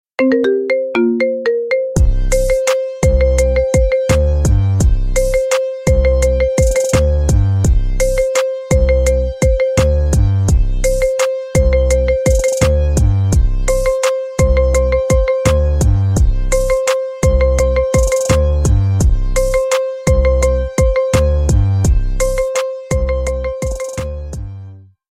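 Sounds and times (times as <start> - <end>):
marimba remix: 0.2 - 24.5.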